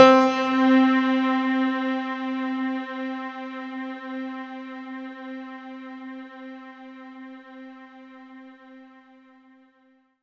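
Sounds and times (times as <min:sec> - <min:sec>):
synth line in C4: 0:00.0 - 0:04.3.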